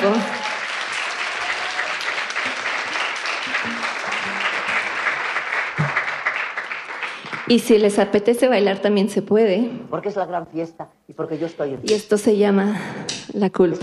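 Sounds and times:
audience applause: 0:00.0 - 0:07.6
speech: 0:07.5 - 0:13.8.

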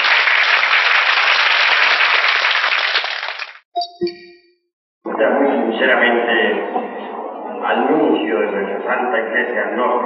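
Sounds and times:
audience applause: 0:00.0 - 0:03.6
speech: 0:05.2 - 0:07.0, 0:07.6 - 0:10.0.

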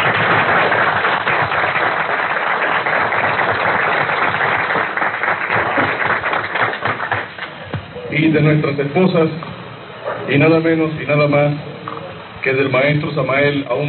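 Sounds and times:
audience applause: 0:00.0 - 0:07.6
speech: 0:08.3 - 0:09.5, 0:10.3 - 0:11.7, 0:12.4 - 0:13.8.

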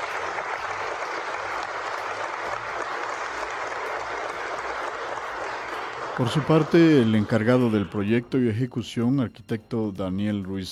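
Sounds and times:
audience applause: 0:00.0 - 0:08.0
speech: 0:06.2 - 0:10.7.

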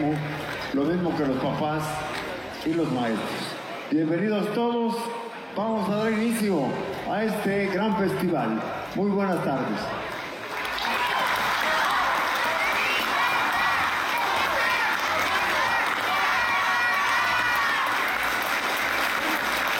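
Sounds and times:
speech: 0:00.0 - 0:10.1
audience applause: 0:10.1 - 0:19.7.

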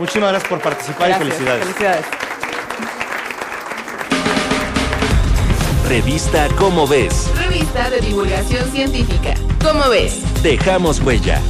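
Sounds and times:
speech: 0:00.0 - 0:02.2, 0:05.9 - 0:11.4
audience applause: 0:00.0 - 0:05.6.

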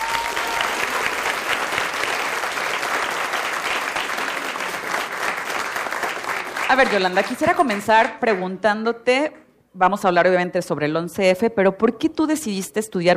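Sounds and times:
audience applause: 0:00.0 - 0:08.4
speech: 0:06.7 - 0:13.1.

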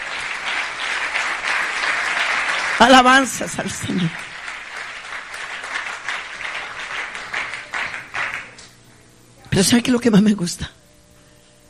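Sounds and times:
audience applauding: 0:00.0 - 0:08.6
speech: 0:02.8 - 0:04.3, 0:09.6 - 0:10.8.

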